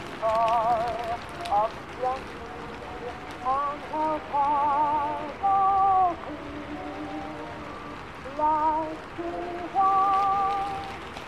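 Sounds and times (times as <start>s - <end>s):
oldies song playing in another room: 0.0s - 11.2s
rain hiss: 0.0s - 11.2s.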